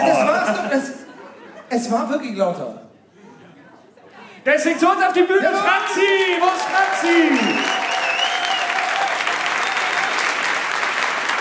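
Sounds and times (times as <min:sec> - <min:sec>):
speech: 0:00.0 - 0:01.0, 0:01.7 - 0:02.8, 0:04.4 - 0:07.8
laughter: 0:00.0 - 0:02.1
audience applause: 0:05.5 - 0:11.3.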